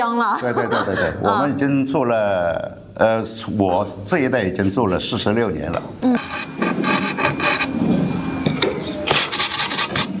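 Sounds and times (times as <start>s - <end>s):
speech: 0.0s - 6.7s
laughter: 0.2s - 1.4s
rasp scraping wood by hand: 6.2s - 8.0s, 8.9s - 10.1s.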